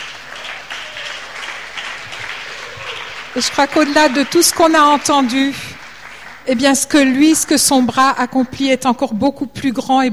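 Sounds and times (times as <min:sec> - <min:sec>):
audience applause: 0:00.0 - 0:07.9
speech: 0:03.4 - 0:05.7, 0:06.4 - 0:10.1.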